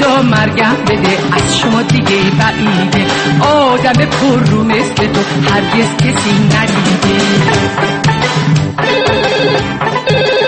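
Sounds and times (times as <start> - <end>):
speech: 0.2 - 8.9
telephone ringing: 8.8 - 10.4.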